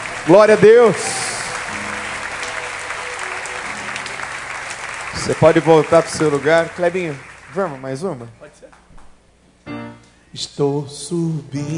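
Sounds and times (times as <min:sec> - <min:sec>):
audience applause: 0:00.0 - 0:08.3
speech: 0:00.2 - 0:01.2, 0:05.3 - 0:08.8, 0:10.3 - 0:11.7.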